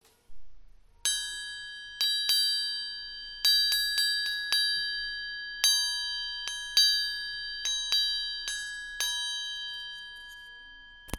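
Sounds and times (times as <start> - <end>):
triangle: 0.0 - 11.1.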